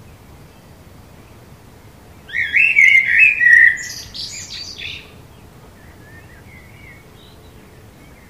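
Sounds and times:
common blackbird singing: 0:02.2 - 0:08.2.

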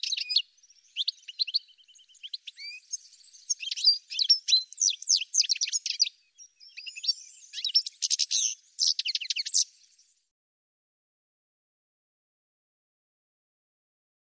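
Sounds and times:
bird song: 0:00.0 - 0:10.3.

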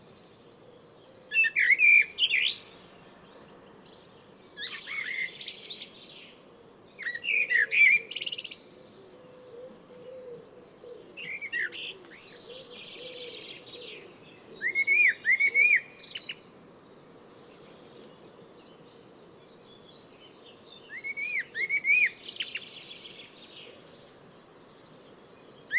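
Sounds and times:
bird song of quick varied whistled notes with sharp chirps and buzzy elements: 0:00.0 - 0:25.7.

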